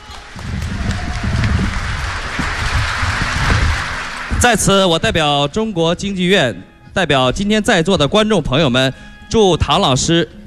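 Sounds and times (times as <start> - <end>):
audience applause: 0.0 - 5.0
speech: 4.4 - 10.4.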